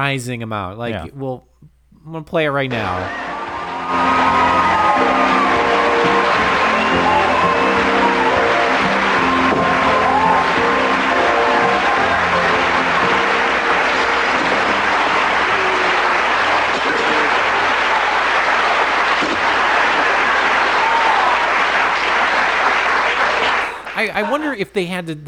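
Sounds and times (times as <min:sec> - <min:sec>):
speech: 0:00.0 - 0:03.2, 0:03.9 - 0:05.4, 0:24.0 - 0:25.2
thunderous studio audience applause: 0:02.7 - 0:25.2
whoops and shouts: 0:03.1 - 0:13.2, 0:14.4 - 0:18.1, 0:19.6 - 0:21.6.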